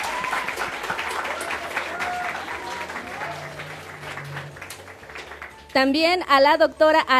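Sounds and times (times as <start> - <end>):
audience applause: 0.0 - 5.7
speech: 5.8 - 7.1.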